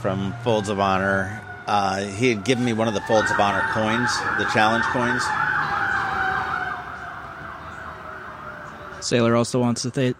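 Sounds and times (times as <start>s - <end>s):
speech: 0.0s - 5.4s, 9.1s - 10.1s
emergency vehicle siren passing: 0.0s - 9.3s.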